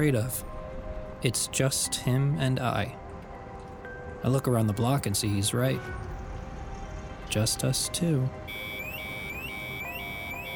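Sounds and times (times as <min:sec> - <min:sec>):
speech: 0:00.0 - 0:00.5, 0:01.2 - 0:03.0, 0:04.2 - 0:06.2, 0:07.3 - 0:08.7
electronic alarm sound effect: 0:08.5 - 0:10.5.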